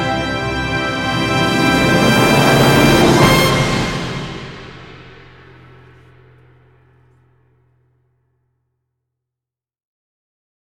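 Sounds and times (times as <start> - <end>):
orchestral music: 0.0 - 6.9.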